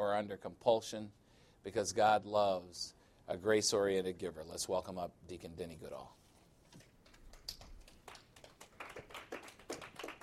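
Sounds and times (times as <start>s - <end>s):
speech: 0.0s - 6.8s
audience clapping: 6.9s - 10.2s.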